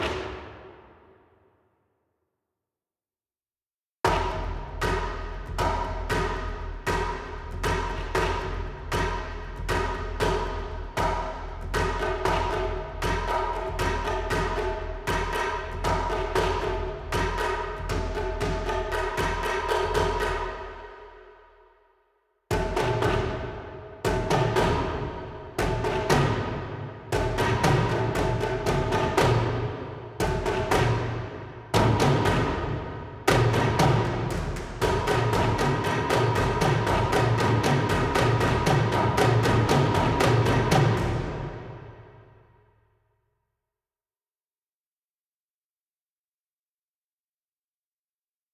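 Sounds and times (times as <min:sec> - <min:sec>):
heavy blades orchestral percussion: 0:00.0 - 0:01.1, 0:04.1 - 0:21.2, 0:22.5 - 0:42.4.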